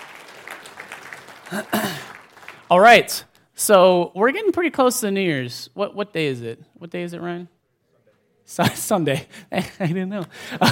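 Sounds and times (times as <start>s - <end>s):
audience applause for the band: 0.0s - 2.8s
speech: 1.5s - 7.6s, 8.5s - 10.7s.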